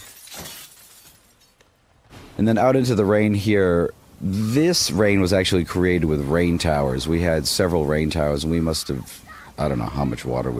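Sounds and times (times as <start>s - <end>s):
axe smashing through glass: 0.0s - 1.6s
glass shards tinkling: 0.0s - 1.6s
speech: 2.4s - 10.5s.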